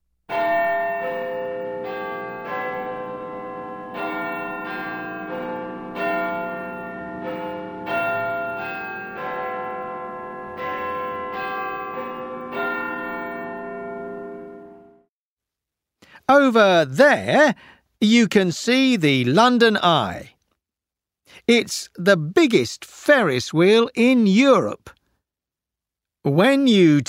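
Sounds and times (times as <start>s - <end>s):
Big Ben clock tower bell striking twelve: 0.3s - 15.1s
speech: 16.4s - 20.3s, 21.5s - 25.0s, 26.2s - 27.0s.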